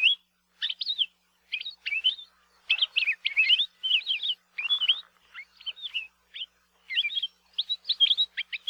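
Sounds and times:
Palila songs and calls: 0.0 - 8.6.

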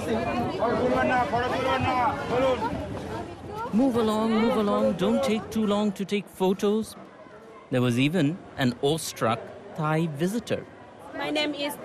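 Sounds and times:
dense crowd murmuring and chattering: 0.0 - 11.8
speech: 0.1 - 3.0, 3.7 - 7.0, 7.7 - 10.7, 11.3 - 11.8.

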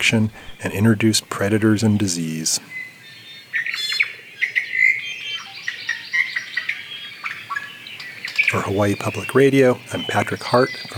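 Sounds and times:
speech: 0.0 - 2.8, 8.5 - 10.9
Kauai o'o calling with whistled notes and chirps: 2.6 - 10.9.

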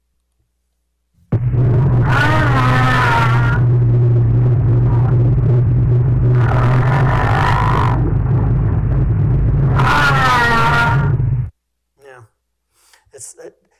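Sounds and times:
gray whale calls: 1.8 - 9.0, 9.6 - 11.3.

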